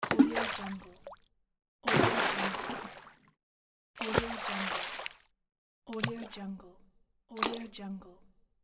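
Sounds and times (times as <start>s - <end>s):
water splash: 0.0s - 1.2s, 1.9s - 3.2s, 4.0s - 5.2s.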